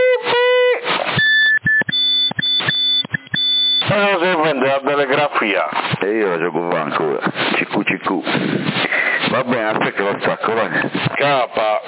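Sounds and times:
1750 Hz tone beep on Kenwood VHF radio: 1.0 - 4.4
speech: 4.0 - 11.8.

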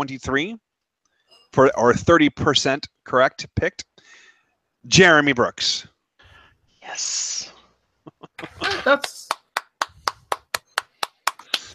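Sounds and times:
speech: 0.0 - 0.6, 1.5 - 4.2, 4.8 - 5.9, 6.9 - 7.5, 8.4 - 9.3
laughter: 8.0 - 9.3
hand clapping: 8.7 - 11.7.

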